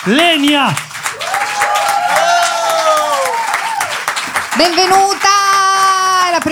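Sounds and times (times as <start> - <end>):
speech: 0.0 - 0.9, 4.6 - 5.4, 6.4 - 6.5
audience applause for comedian: 0.0 - 6.5.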